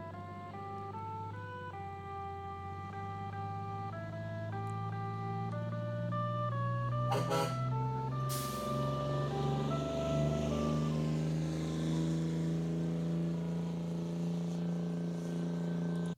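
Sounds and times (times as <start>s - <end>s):
low bus engine rumble: 0.0s - 16.1s
traffic noise: 0.0s - 16.1s
musical air horn of a passing bus: 6.9s - 9.0s.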